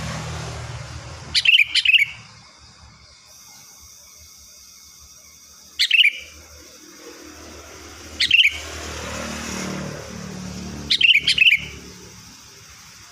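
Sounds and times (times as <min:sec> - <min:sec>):
Sooty-headed bulbul giving liquid chattering whistled phrases: 0:01.3 - 0:02.3, 0:05.6 - 0:06.9, 0:07.9 - 0:08.8, 0:10.8 - 0:12.1.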